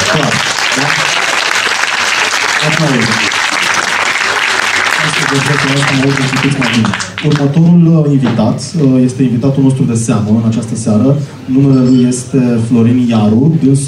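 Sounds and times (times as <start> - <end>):
audience applause: 0.0 - 7.5
speech: 0.1 - 1.1, 2.8 - 3.4, 5.3 - 13.8.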